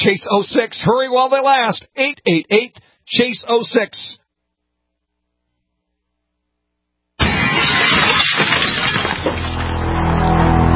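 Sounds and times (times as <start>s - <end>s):
speech: 0.0s - 4.2s
window glass smashing in a home break-in: 7.2s - 10.3s.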